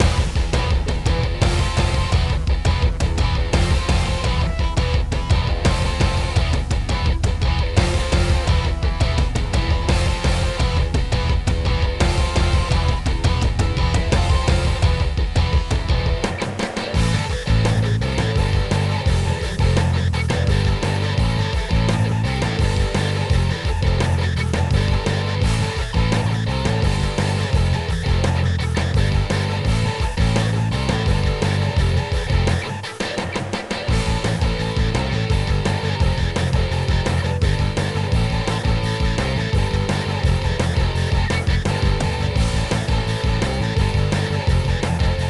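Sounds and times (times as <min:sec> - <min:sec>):
music: 0:00.0 - 0:45.2.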